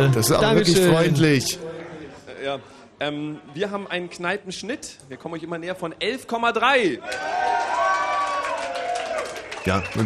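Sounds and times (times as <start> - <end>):
speech: 0.0 - 1.8, 2.4 - 7.4, 9.6 - 10.0
audience clapping: 7.1 - 10.0.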